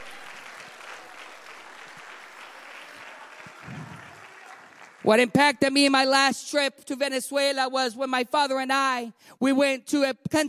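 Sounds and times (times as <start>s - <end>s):
audience hand clapping: 0.0s - 5.4s
speech: 5.0s - 10.4s.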